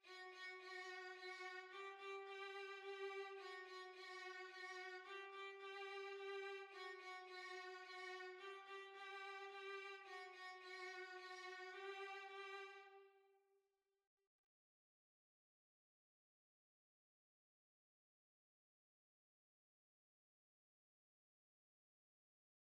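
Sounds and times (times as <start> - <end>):
violin waltz: 0.1 - 13.0.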